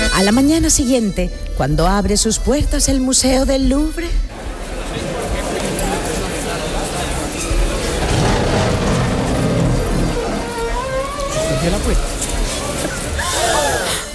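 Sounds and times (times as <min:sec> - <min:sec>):
speech: 0:00.2 - 0:04.3
crowd gasping and shouting in surprise: 0:04.3 - 0:14.1.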